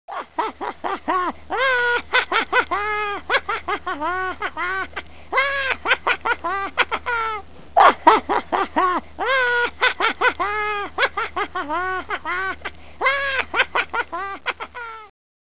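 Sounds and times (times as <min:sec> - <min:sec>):
wolf laughing: 0:00.1 - 0:15.1.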